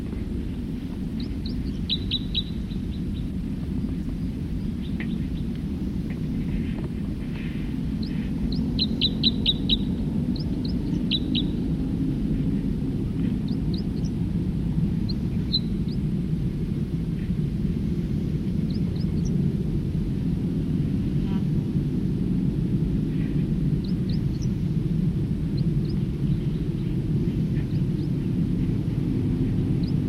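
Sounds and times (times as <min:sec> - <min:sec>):
steady heavy low rumble: 0:00.0 - 0:30.0
songbird singing: 0:00.8 - 0:14.2, 0:14.9 - 0:16.1, 0:18.5 - 0:19.4, 0:23.2 - 0:24.8, 0:25.4 - 0:30.0.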